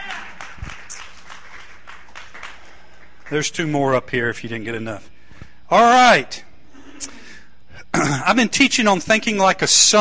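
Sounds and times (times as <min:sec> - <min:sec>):
church congregation clapping for fathers: 0:00.0 - 0:04.1
speech: 0:03.3 - 0:05.1, 0:05.7 - 0:06.4, 0:08.1 - 0:09.9.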